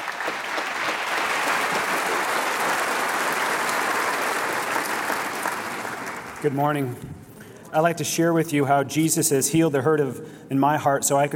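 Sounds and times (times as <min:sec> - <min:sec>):
church congregation applauding to welcome a pastor: 0:00.0 - 0:06.8
speech: 0:06.4 - 0:11.3.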